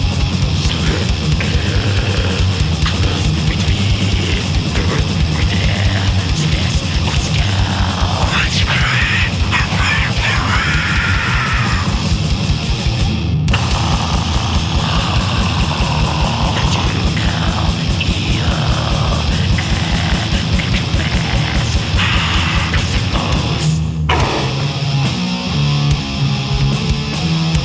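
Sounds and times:
black metal music: 0:00.0 - 0:27.6.

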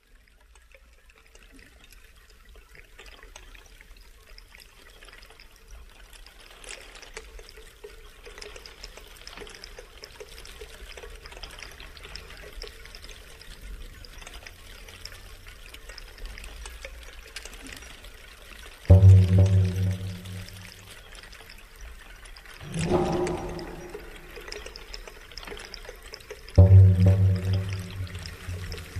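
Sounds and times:
waterfall: 0:18.9 - 0:20.9, 0:22.6 - 0:24.8, 0:26.6 - 0:28.9.

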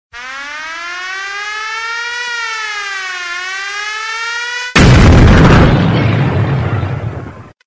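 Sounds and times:
siren: 0:00.1 - 0:04.9
bomb explosion: 0:04.8 - 0:07.6.

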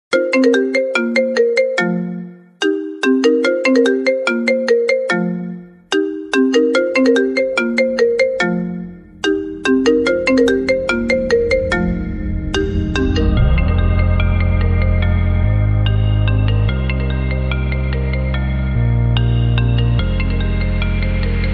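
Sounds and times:
iOS ringtone remix: 0:00.1 - 0:21.5.

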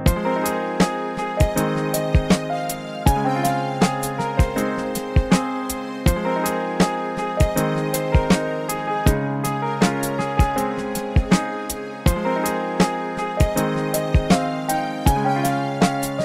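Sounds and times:
lofi music: 0:00.1 - 0:16.2.

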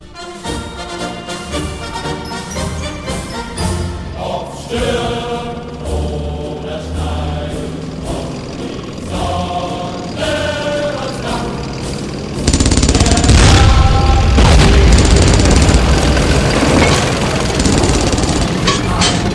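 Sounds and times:
Tiger tank: 0:01.4 - 0:19.3.

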